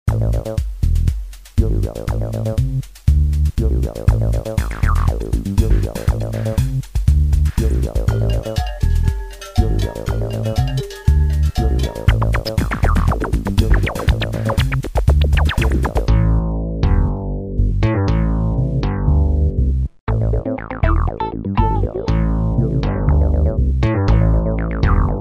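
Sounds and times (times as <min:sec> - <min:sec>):
low techno music: 0:00.1 - 0:25.2.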